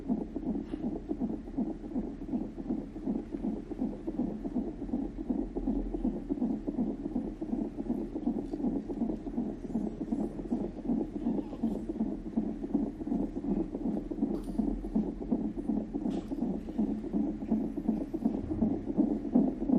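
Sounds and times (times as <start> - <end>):
fetal heartbeat on a Doppler monitor before birth: 0.0 - 19.7.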